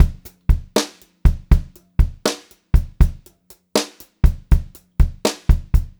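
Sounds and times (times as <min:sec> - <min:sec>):
brushed drum loop: 0:00.0 - 0:05.9.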